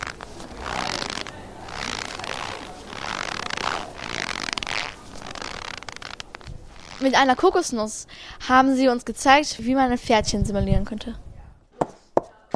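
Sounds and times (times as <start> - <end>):
small flour sack pressed to simulate footsteps in snow: 0.0 - 6.9
speech: 7.0 - 11.2.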